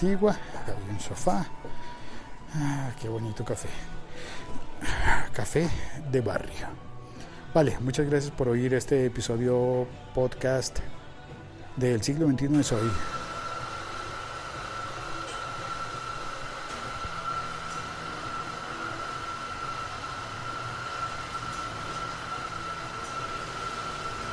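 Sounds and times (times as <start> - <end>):
speech: 0.0 - 6.9, 7.6 - 11.0, 11.8 - 13.2
coffee grinder grinding coffee: 12.6 - 24.3.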